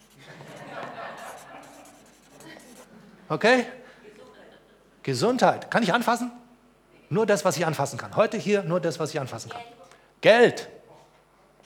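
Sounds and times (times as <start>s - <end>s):
pen writing on paper: 0.0s - 2.9s
laughter: 0.2s - 5.0s
speech: 3.3s - 3.8s, 5.0s - 6.4s, 7.1s - 10.8s.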